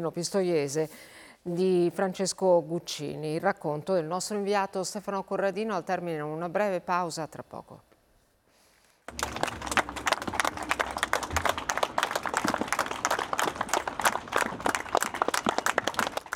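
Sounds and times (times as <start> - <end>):
speech: 0.0 - 7.9
long applause: 9.1 - 16.3.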